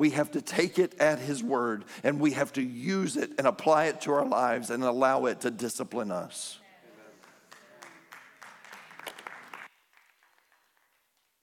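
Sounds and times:
speech: 0.0s - 6.6s
audience applauding: 7.1s - 11.4s.

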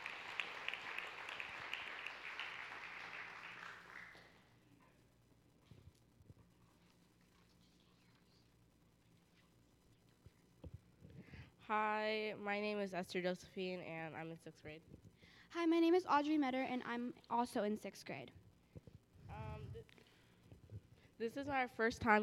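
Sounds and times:
audience clapping: 0.0s - 4.5s
speech: 11.7s - 18.4s, 21.2s - 22.2s.

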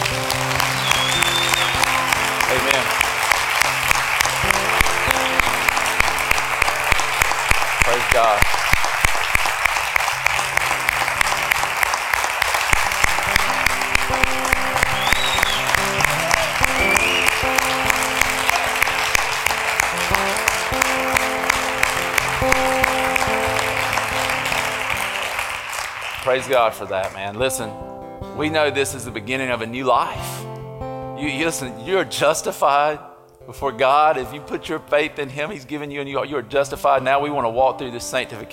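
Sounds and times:
church audience applause: 0.0s - 27.2s
speech: 26.4s - 30.4s, 31.2s - 38.5s.

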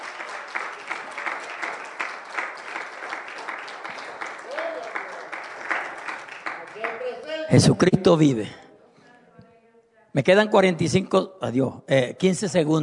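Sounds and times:
audience applause: 0.0s - 7.2s
speech: 7.5s - 8.6s, 10.2s - 12.8s.

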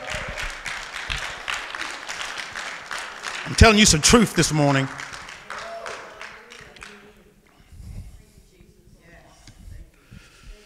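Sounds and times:
crowd clapping: 0.0s - 7.2s
speech: 3.5s - 5.0s.

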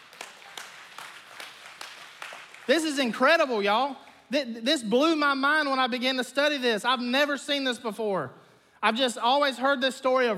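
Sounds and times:
audience clapping: 0.0s - 4.2s
speech: 2.7s - 10.3s.

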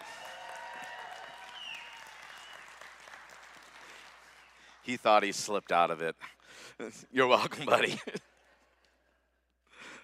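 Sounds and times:
audience applauding for a birthday at a morning gathering: 0.0s - 5.0s
speech: 4.8s - 8.2s.

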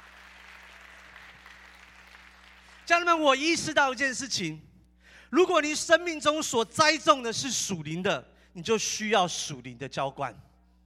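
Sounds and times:
church congregation clapping: 0.0s - 3.2s
constant low electrical hum: 0.0s - 10.8s
speech: 2.9s - 4.7s, 5.3s - 10.5s.

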